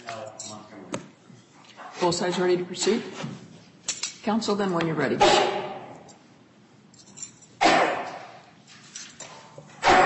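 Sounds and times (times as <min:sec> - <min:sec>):
speech: 0:02.0 - 0:03.4, 0:04.2 - 0:05.7
sneeze: 0:07.6 - 0:08.3, 0:09.8 - 0:10.0.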